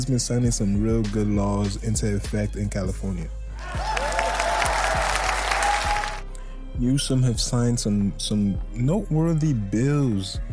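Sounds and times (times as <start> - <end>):
speech: 0.0 - 3.9, 6.8 - 10.5
audience applause: 3.6 - 6.2.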